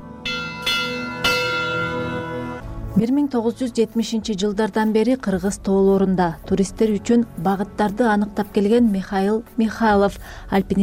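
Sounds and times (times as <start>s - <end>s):
memorial bell ringing for climbers lost in Kyrgyzstan's mountains: 0.2s - 2.6s
speech: 3.0s - 10.8s.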